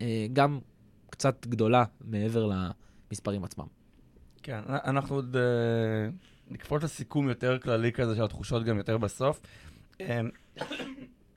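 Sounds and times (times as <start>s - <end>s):
speech: 0.0s - 3.8s, 4.4s - 11.2s
cough: 10.5s - 11.3s.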